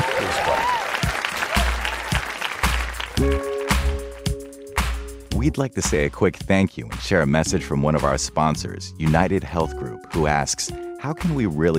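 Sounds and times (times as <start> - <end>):
audience applause: 0.0 - 4.2
speech: 5.4 - 11.7.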